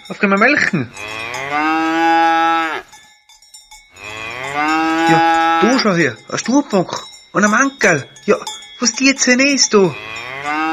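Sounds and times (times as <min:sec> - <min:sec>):
cowbells clanking on a farm: 0:00.0 - 0:10.7
speech: 0:00.1 - 0:01.9, 0:05.1 - 0:10.2
cow mooing on a farm: 0:01.0 - 0:02.9, 0:04.0 - 0:05.9, 0:09.8 - 0:10.7.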